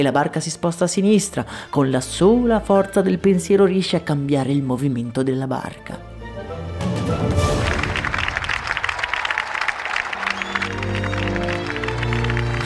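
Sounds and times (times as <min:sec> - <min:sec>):
speech: 0:00.0 - 0:06.2
audience applause: 0:07.3 - 0:12.6.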